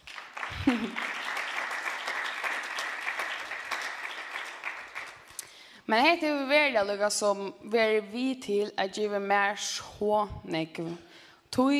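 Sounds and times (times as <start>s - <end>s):
audience applause after a sung performance: 0.0s - 5.4s
laughter: 0.4s - 1.5s
speech: 0.7s - 1.1s, 5.9s - 11.7s.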